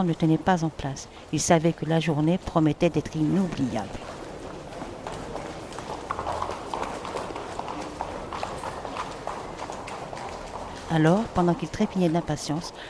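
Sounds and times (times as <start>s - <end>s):
speech: 0.0s - 4.2s, 10.9s - 12.8s
hooves clip-clopping from an arriving horse-drawn carriage: 1.6s - 12.8s.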